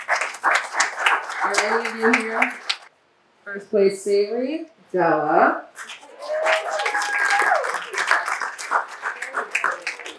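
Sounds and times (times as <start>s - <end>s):
audience clapping: 0.0s - 2.9s, 5.8s - 10.1s
speech: 1.5s - 2.6s, 3.4s - 5.9s.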